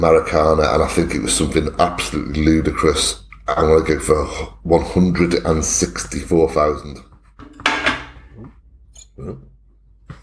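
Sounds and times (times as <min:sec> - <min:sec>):
speech: 0:00.0 - 0:07.1, 0:09.2 - 0:09.5
mug being dropped: 0:07.4 - 0:08.3.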